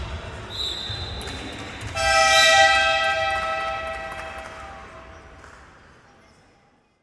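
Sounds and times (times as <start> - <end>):
football horn blowing: 1.9 - 4.4.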